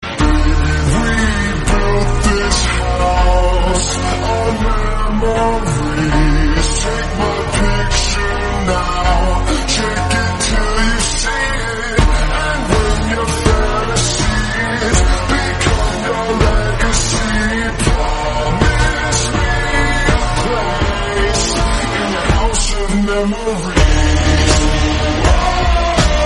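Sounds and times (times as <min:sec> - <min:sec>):
English-language song: 0:00.0 - 0:26.2
piano: 0:00.0 - 0:26.2.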